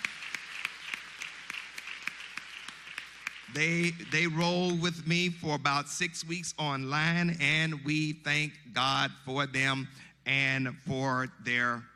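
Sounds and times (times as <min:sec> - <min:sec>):
audience applause: 0:00.0 - 0:04.4
speech: 0:03.5 - 0:11.9.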